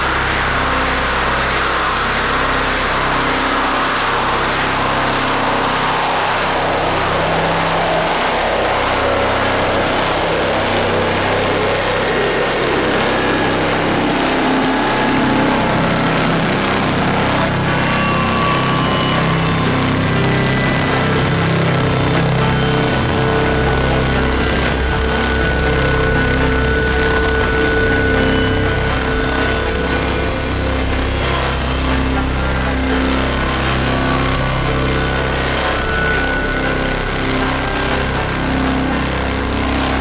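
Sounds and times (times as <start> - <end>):
noise: 0.0 - 39.9.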